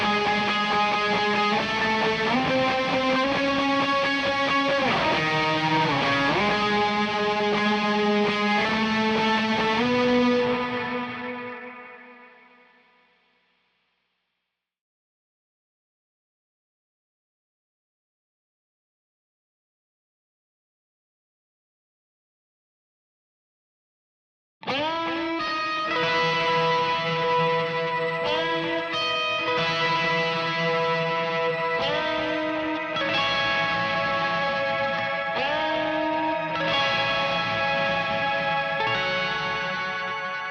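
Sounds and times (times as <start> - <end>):
guitar: 0.0 - 13.3, 24.6 - 40.4.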